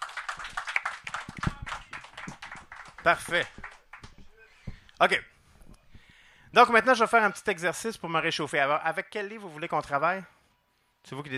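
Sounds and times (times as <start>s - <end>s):
audience clapping for a performer at a live mind-reading show: 0.0s - 4.4s
speech: 3.0s - 3.7s, 5.0s - 5.3s, 6.5s - 10.4s, 11.0s - 11.3s.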